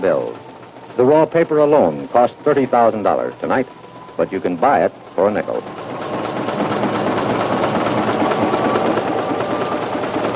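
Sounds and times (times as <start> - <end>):
speech: 0.0 - 0.4, 1.0 - 5.9
newspaper printing presses running: 0.0 - 10.3.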